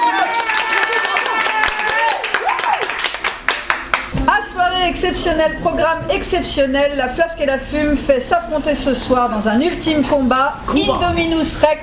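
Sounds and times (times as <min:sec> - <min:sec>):
audience applause: 0:00.0 - 0:04.1
speech: 0:04.8 - 0:11.8.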